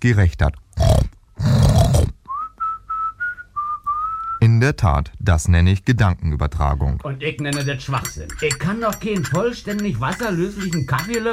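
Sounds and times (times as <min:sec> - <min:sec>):
speech: 0:00.0 - 0:00.9, 0:04.6 - 0:11.3
pig grunting in pigsty: 0:00.8 - 0:02.2
short whistling tones: 0:02.3 - 0:04.4.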